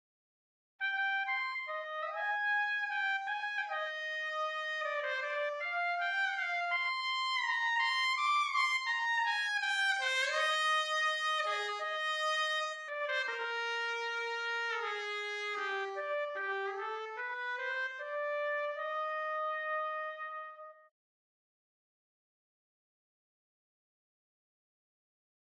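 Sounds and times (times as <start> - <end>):
trumpet: 0.8 - 8.3, 9.6 - 20.9.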